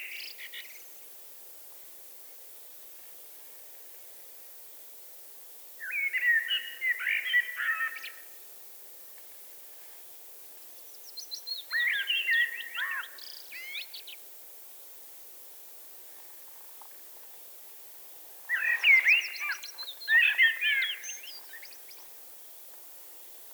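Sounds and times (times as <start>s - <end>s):
Eurasian blackbird singing warbled phrases: 5.8s - 8.2s, 11.1s - 14.2s, 18.5s - 21.9s.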